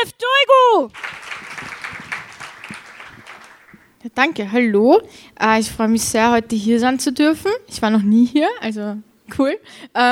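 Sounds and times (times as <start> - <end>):
speech: 0.0 - 1.1, 4.1 - 10.1
audience applause for the reigning Austrian champion at a competition semifinal: 1.0 - 4.0.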